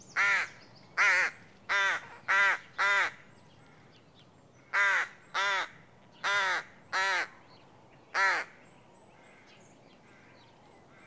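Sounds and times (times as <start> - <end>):
rook caw: 0.2 - 3.9, 4.6 - 7.4, 8.1 - 8.6, 9.2 - 11.0.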